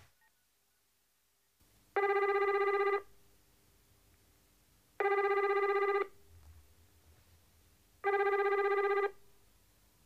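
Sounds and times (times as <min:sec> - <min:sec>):
telephone ringing tone: 0:02.0 - 0:03.0, 0:05.0 - 0:06.1, 0:08.0 - 0:09.1.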